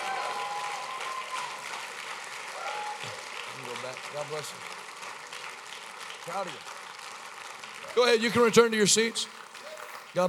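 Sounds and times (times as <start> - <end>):
audience applauding with hand claps: 0.0 - 10.2
speech: 3.9 - 4.8, 6.3 - 6.8, 7.8 - 9.4.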